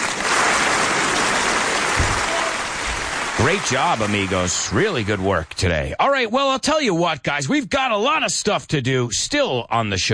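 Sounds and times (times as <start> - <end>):
round of applause: 0.0 - 5.7
speech: 3.4 - 10.1.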